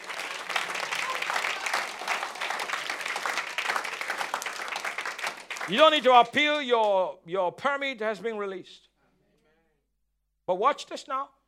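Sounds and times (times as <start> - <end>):
audience clapping: 0.0 - 7.0
speech: 5.7 - 8.9, 10.5 - 11.4.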